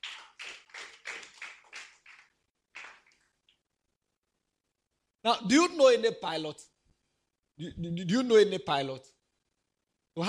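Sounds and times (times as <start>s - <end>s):
group clapping in unison: 0.0s - 3.4s
speech: 5.2s - 6.7s, 7.6s - 9.2s.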